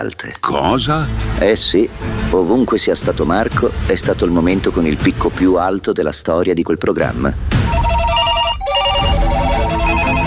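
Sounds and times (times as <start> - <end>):
speech: 0.0 - 7.8
telephones ringing: 7.6 - 10.2.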